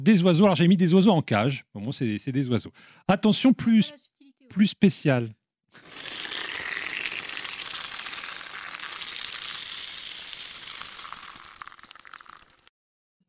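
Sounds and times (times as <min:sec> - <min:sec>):
speech: 0:00.0 - 0:06.0
woman urinating: 0:05.8 - 0:12.7.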